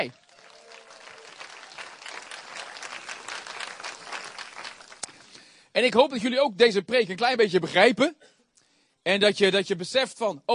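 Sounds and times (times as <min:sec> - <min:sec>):
speech: 0:00.0 - 0:00.2, 0:05.8 - 0:08.3, 0:09.0 - 0:10.5
applause: 0:00.0 - 0:05.5.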